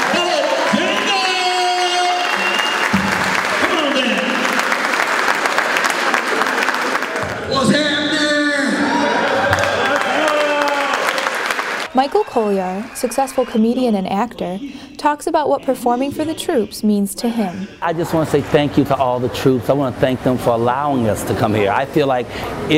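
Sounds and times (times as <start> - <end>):
audience applause: 0.0 - 13.7
speech: 12.0 - 22.7.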